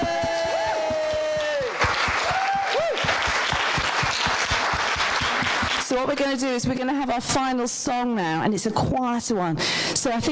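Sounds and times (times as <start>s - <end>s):
crowd cheering with whoops: 0.0s - 5.8s
audience applause: 0.0s - 6.1s
speech: 6.0s - 10.3s.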